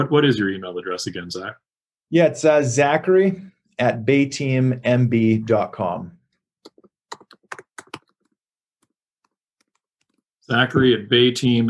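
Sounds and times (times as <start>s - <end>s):
speech: 0.0s - 6.2s, 10.5s - 11.6s
computer keyboard keys tapping as an email address is typed: 6.6s - 10.2s.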